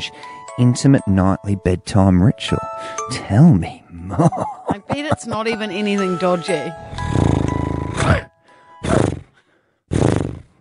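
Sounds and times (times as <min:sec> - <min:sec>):
speech: 0:00.0 - 0:07.3
person imitating a horse: 0:07.8 - 0:09.3.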